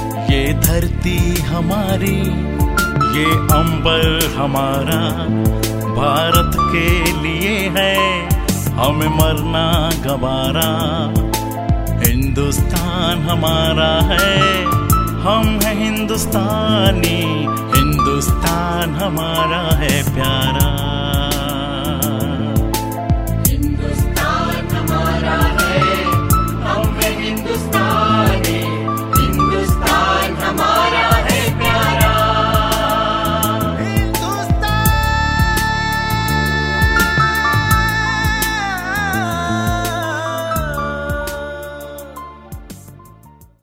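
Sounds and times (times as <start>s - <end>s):
man's voice: 0.2s - 23.0s, 23.5s - 43.0s.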